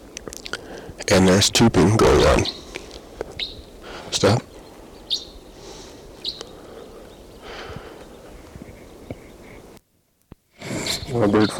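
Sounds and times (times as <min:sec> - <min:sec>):
hiss: 0:00.0 - 0:11.5
speech: 0:01.0 - 0:02.6, 0:04.2 - 0:04.5, 0:11.2 - 0:11.5
male crossbill singing: 0:01.3 - 0:09.7, 0:10.8 - 0:11.5.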